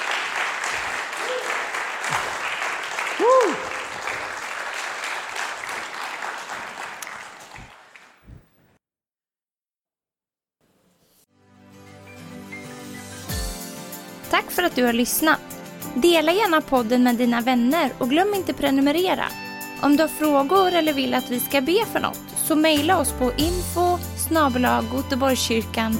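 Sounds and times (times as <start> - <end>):
applause: 0.0 - 8.6
speech: 14.7 - 25.9.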